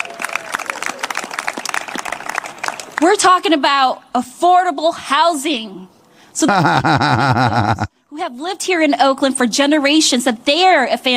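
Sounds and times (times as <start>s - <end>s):
crowd applauding: 0.0s - 3.0s
speech: 3.0s - 11.1s
laughter: 6.4s - 7.9s.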